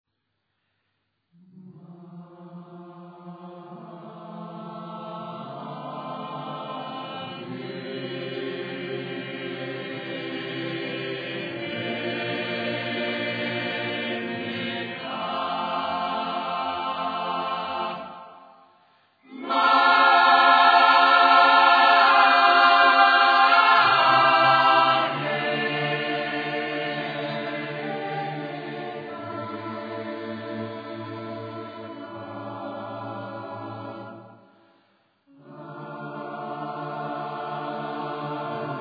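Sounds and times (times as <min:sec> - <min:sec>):
choral sacred music: 0:01.3 - 0:38.7.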